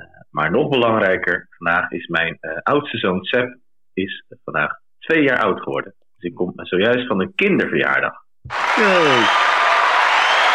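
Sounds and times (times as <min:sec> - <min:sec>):
speech: 0:00.3 - 0:09.6
applause: 0:08.5 - 0:10.5.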